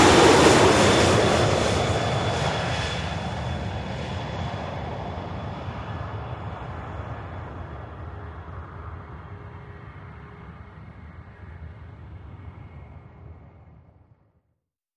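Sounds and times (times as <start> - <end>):
jumbo jet flying over: 0.0 - 14.0.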